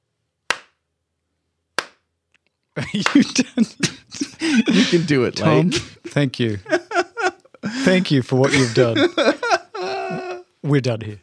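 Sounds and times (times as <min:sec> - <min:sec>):
slow clap: 0:00.5 - 0:00.8, 0:01.8 - 0:02.0, 0:02.8 - 0:04.9
laughter: 0:02.8 - 0:10.6
speech: 0:02.9 - 0:06.8, 0:07.8 - 0:09.4, 0:10.6 - 0:11.2.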